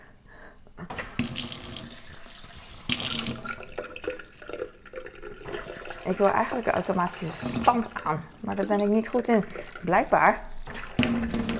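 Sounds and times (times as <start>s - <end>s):
boiling-water tap running: 1.0s - 11.5s
speech: 6.1s - 10.5s.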